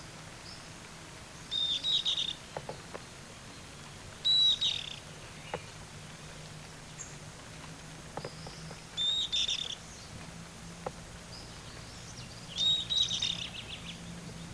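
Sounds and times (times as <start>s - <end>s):
bird calls with thin high whistles: 1.5s - 2.4s, 4.2s - 5.0s, 9.0s - 9.8s, 12.5s - 14.0s.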